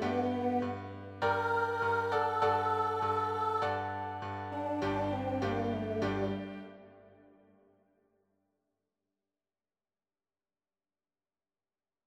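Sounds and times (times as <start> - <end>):
alto voice singing: 0.0 - 7.1.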